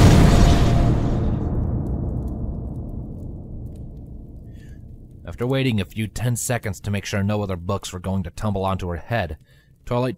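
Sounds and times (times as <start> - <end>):
magic energy blast slamming into a wall: 0.0 - 5.2
low rumble: 0.0 - 6.3
speech: 5.3 - 10.1.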